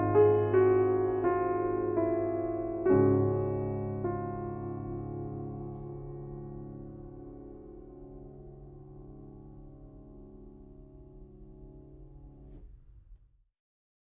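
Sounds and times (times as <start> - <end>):
grand piano: 0.0 - 13.3.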